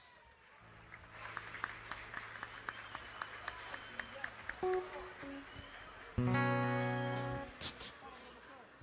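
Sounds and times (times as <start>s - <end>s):
audience applause: 0.5s - 7.3s
sustained musical tones: 4.6s - 5.6s, 6.2s - 7.6s.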